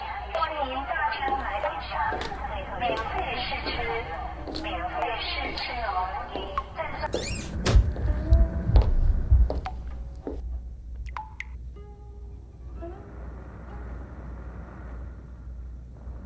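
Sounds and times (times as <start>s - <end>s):
footsteps: 0.2s - 10.7s.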